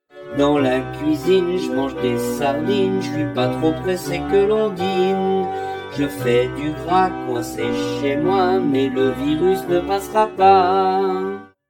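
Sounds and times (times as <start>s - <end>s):
slowed song verse: 0.3s - 11.5s.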